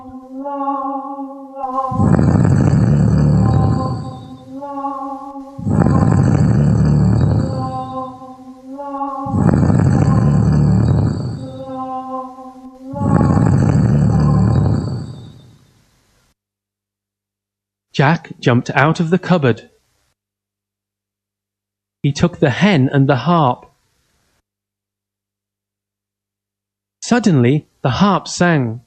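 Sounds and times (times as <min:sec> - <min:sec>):
giant snoring: 0:01.6 - 0:15.8
speech: 0:18.0 - 0:19.7, 0:22.0 - 0:23.7, 0:27.1 - 0:28.8.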